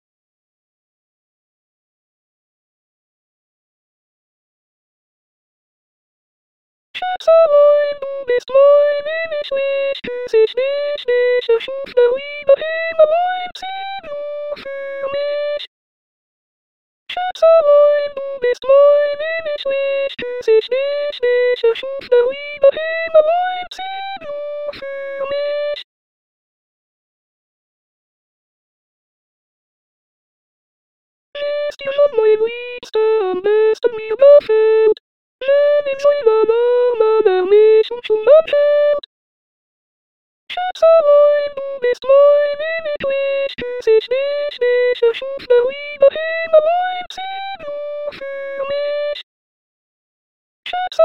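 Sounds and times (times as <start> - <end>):
soprano singing: 7.0 - 15.7, 17.1 - 25.8, 31.4 - 39.1, 40.5 - 49.2.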